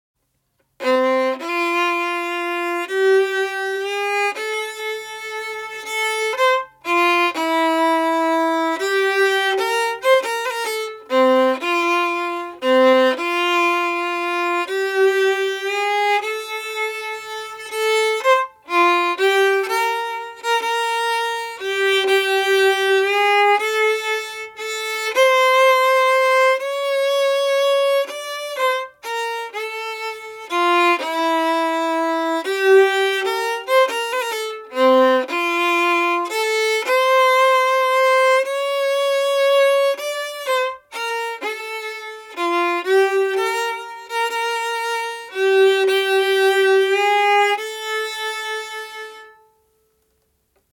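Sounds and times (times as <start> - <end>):
fiddle playing waltz quadrille harmony: 0.6 - 49.8.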